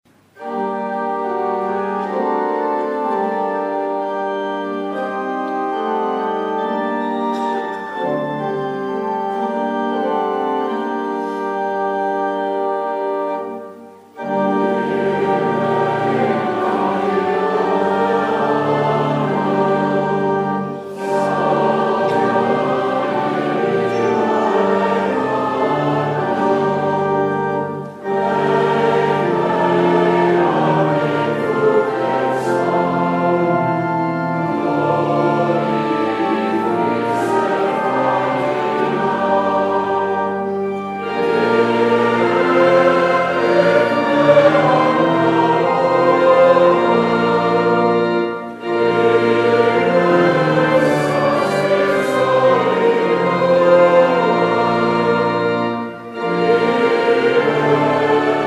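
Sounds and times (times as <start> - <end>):
congregation singing: 0.1 - 58.4.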